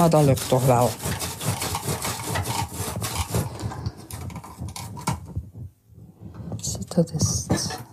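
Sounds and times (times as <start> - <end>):
speech: 0.0 - 1.2, 7.0 - 7.4
sharp knife pressed hard through firm fennel: 0.0 - 5.2.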